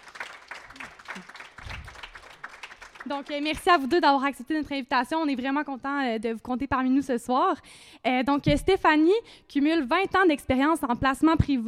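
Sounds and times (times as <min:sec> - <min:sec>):
audience applause: 0:00.0 - 0:03.6
speech: 0:03.0 - 0:11.6.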